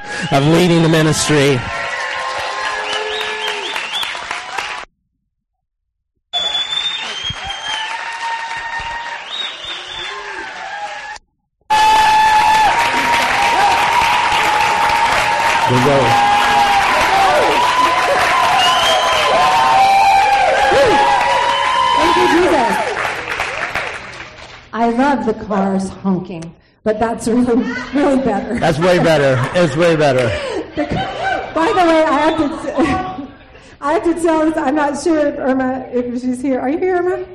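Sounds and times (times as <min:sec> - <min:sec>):
audience cheering and whooping: 0:00.0 - 0:04.8, 0:06.4 - 0:24.1, 0:31.0 - 0:33.1
audience applauding: 0:00.1 - 0:04.9, 0:06.4 - 0:24.7, 0:28.8 - 0:30.4
speech: 0:00.2 - 0:01.8, 0:25.2 - 0:33.0, 0:33.8 - 0:37.3
laughter: 0:27.6 - 0:33.6.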